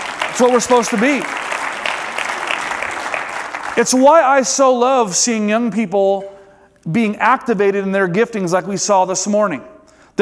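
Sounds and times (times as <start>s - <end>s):
audience round of applause: 0.0s - 4.0s
speech: 0.4s - 1.5s, 3.8s - 10.2s.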